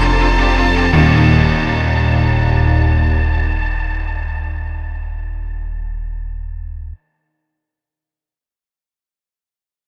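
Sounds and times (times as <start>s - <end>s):
backing track music without click: 0.0s - 6.8s.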